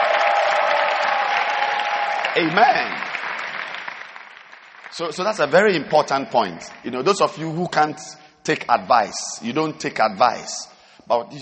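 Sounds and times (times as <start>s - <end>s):
faint cheering: 0.0s - 3.0s
audience clapping: 0.0s - 7.8s
speech: 2.4s - 3.1s, 5.0s - 11.3s.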